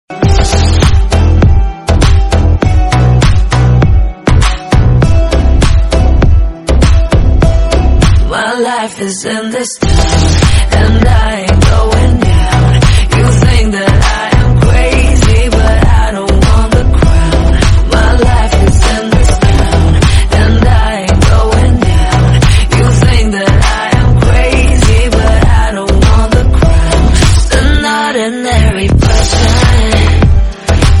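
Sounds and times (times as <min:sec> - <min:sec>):
background music: 0:00.1 - 0:30.9.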